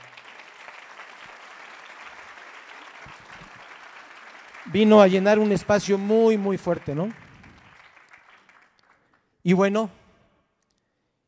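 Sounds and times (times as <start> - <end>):
crowd applauding: 0.0 - 9.3
speech: 4.7 - 7.2, 9.5 - 10.0.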